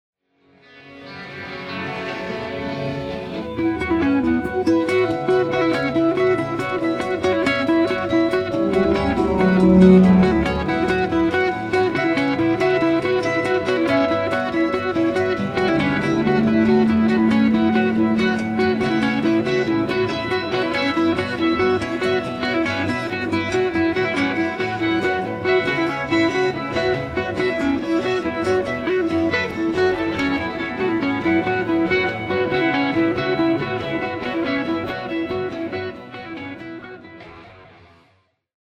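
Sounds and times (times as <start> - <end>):
guitar nocturne: 0.5 - 38.3.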